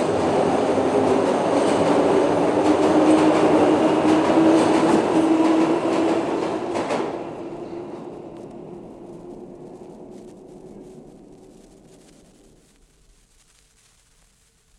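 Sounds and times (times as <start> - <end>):
train at platform departing: 0.0 - 11.3.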